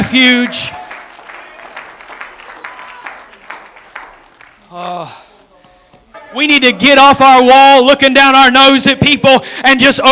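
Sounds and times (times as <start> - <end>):
audience clapping and shouting: 0.0 - 6.0
speech: 0.1 - 0.8, 6.3 - 10.1.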